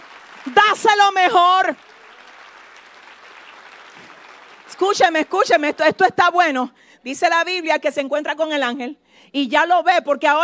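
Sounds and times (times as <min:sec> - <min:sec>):
audience applause: 0:00.0 - 0:06.0
speech: 0:00.4 - 0:01.9, 0:04.8 - 0:10.4.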